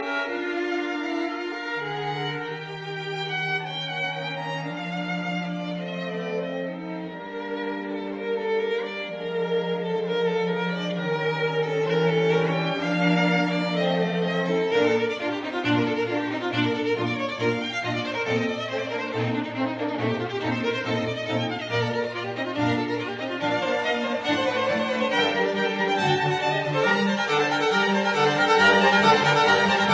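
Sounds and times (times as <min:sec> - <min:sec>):
string quartet playing an allegro in B flat major: 0:00.0 - 0:29.9.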